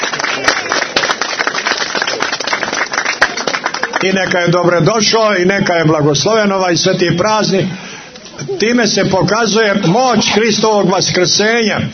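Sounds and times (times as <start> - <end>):
crowd applauding a prince at a religious feast gathering in Crnica: 0.0 - 4.8
speech: 4.0 - 7.8, 8.4 - 11.9
laughter: 8.2 - 10.8.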